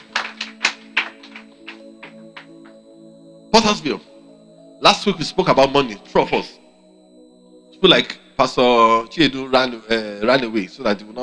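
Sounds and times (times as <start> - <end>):
audience applause: 0.0 - 2.5
speech: 3.6 - 4.1, 4.8 - 6.6, 7.8 - 11.2.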